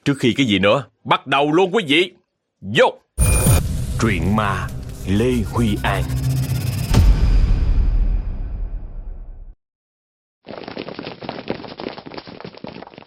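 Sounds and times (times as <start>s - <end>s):
speech: 0.0s - 3.0s, 4.0s - 6.2s
heavy booming hit: 3.2s - 9.5s
running footsteps on a hard brick floor: 10.4s - 13.0s.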